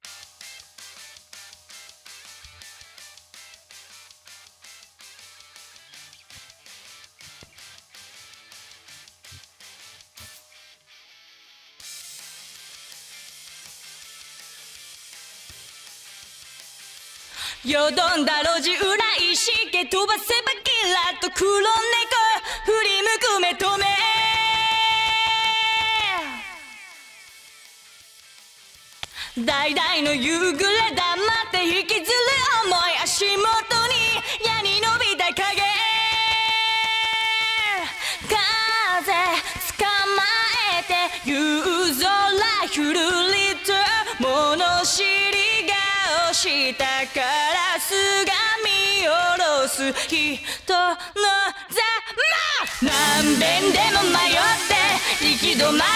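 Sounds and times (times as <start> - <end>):
a cappella singing: 17.6 - 27.2, 29.4 - 51.0, 52.2 - 55.9.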